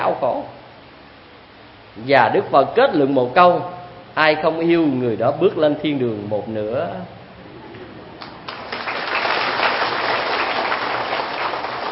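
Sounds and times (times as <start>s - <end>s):
speech: 0.0s - 0.6s, 2.0s - 7.2s
audience applause at a spiritual talk: 8.2s - 11.9s.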